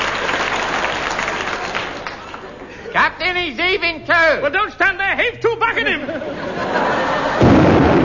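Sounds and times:
laughter: 0.2s - 3.2s, 5.7s - 7.7s
speech: 3.3s - 7.3s
ship's cannon firing: 7.4s - 8.0s.

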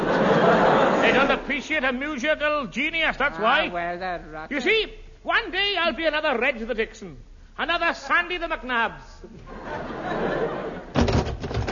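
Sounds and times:
laughter: 0.0s - 1.8s, 9.2s - 11.0s
speech: 1.3s - 10.4s
door: 10.9s - 11.7s.

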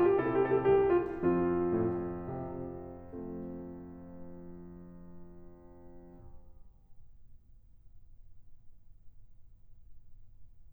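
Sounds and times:
keyboard courante in F major: 0.0s - 5.4s.

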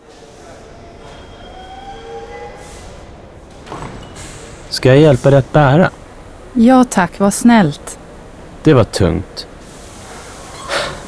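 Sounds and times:
train doors opening with hissing bursts: 0.0s - 5.5s, 9.5s - 11.0s
train pulling into a station and stopping: 0.0s - 11.0s
speech: 4.8s - 6.0s, 6.6s - 7.8s, 8.6s - 9.5s.

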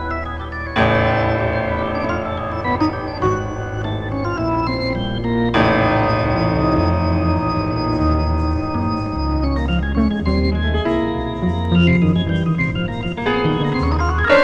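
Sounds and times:
organ playing a classical-style piece: 0.0s - 14.4s.

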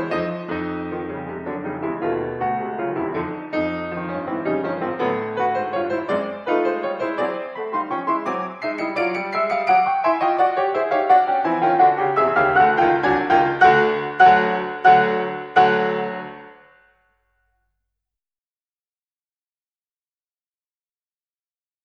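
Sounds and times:
chromatic solo piano invention: 0.0s - 17.0s.

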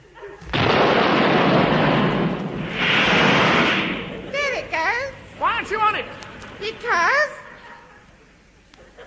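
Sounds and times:
laughter: 0.0s - 0.5s, 7.3s - 9.0s
rocket ship launching after its fuse is lit on the deck: 0.4s - 5.4s
person speaking: 4.3s - 7.7s.

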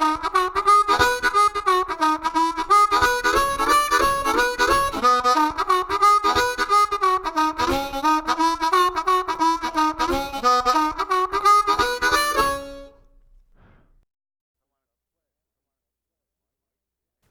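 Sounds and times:
harmonica playing boogie: 0.0s - 13.1s.

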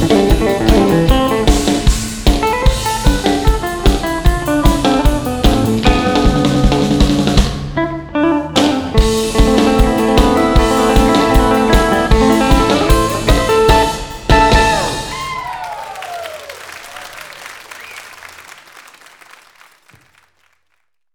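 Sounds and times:
music without bass guitar: 0.0s - 15.2s.

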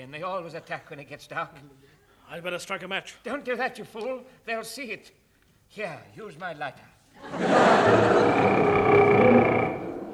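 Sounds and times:
speech: 0.0s - 8.8s
laughter: 7.2s - 10.1s
person imitating a tiger roar: 7.8s - 10.1s.

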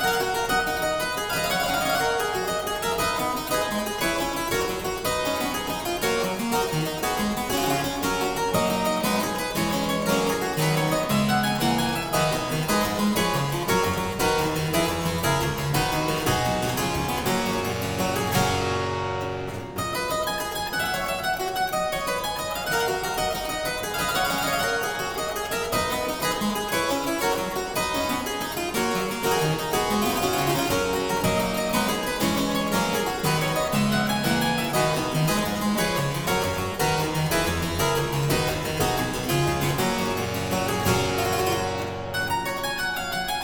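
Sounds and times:
harpsichord playing a gigue in C major: 0.2s - 43.4s.

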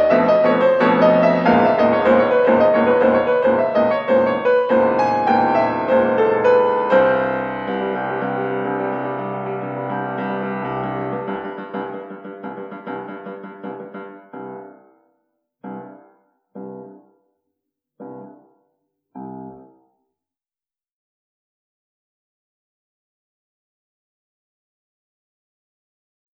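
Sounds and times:
solo piano music in Bulgarian rhythm: 0.0s - 15.0s, 15.6s - 17.1s, 18.0s - 18.5s, 19.2s - 19.8s.

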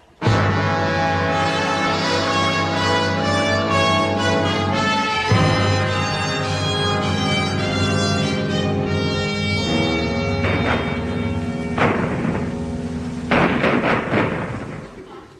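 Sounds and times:
droning tonal backdrop: 0.6s - 14.1s
artillery fire from the 1942 Battle of El Alamein: 10.4s - 15.2s.

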